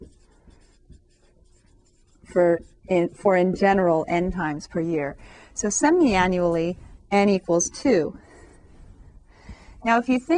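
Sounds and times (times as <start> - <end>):
writing on a board during a maths lesson on compound interest: 0.0 - 4.6
speech: 2.3 - 8.2, 9.8 - 10.3.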